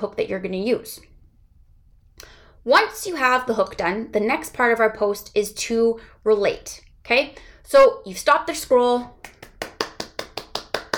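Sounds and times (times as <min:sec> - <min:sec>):
speech: 0:00.0 - 0:01.1, 0:02.2 - 0:09.2
round of applause: 0:09.3 - 0:10.9.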